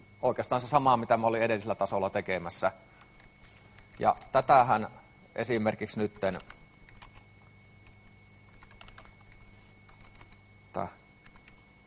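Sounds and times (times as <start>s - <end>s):
speech: 0.2s - 3.0s, 4.0s - 6.6s, 10.8s - 11.0s
typing on a computer keyboard with an English layout: 2.9s - 4.5s, 6.0s - 10.4s, 11.2s - 11.8s.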